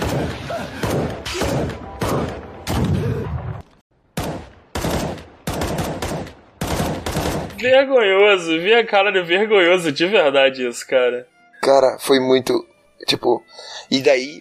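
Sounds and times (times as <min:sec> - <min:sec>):
video game gunfire sound effect: 0:00.0 - 0:03.1, 0:04.2 - 0:07.6
speech: 0:07.6 - 0:14.4.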